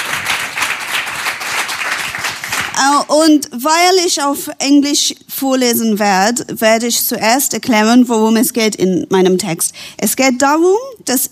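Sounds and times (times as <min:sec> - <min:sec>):
audience applause: 0:00.0 - 0:02.8
speech: 0:02.8 - 0:11.3.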